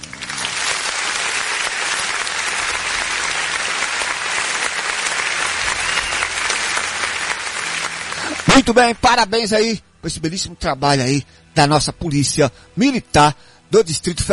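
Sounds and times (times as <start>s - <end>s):
applause sound effect from studio button: 0.0s - 9.1s
speech: 8.6s - 14.3s.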